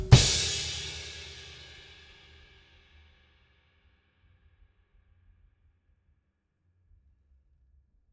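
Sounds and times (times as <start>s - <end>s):
drums: 0.0s - 2.6s.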